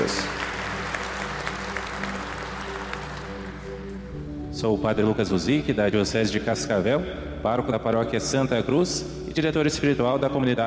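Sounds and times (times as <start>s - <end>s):
speech: 0.0s - 0.4s, 4.6s - 10.6s
audience applause for the seminarians: 0.0s - 3.9s.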